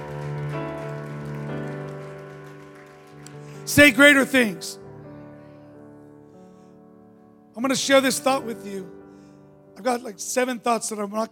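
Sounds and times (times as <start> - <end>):
audience clapping: 0.0 - 4.7
speech: 3.7 - 4.8, 7.6 - 9.0, 9.8 - 11.2.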